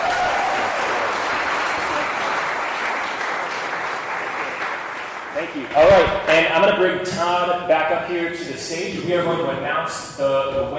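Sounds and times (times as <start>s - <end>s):
audience applause: 0.0s - 6.6s
speech: 5.5s - 10.7s.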